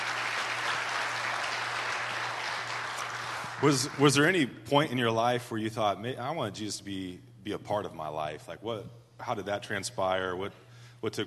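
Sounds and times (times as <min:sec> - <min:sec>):
audience applause: 0:00.0 - 0:04.4
speech: 0:03.6 - 0:11.2.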